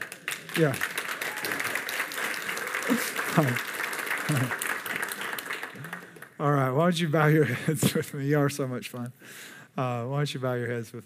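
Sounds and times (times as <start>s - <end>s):
audience clapping: 0.0s - 6.8s
speech: 0.6s - 0.9s, 2.9s - 3.7s, 4.3s - 4.7s, 5.8s - 11.0s
laughter: 2.6s - 3.6s, 4.2s - 4.6s.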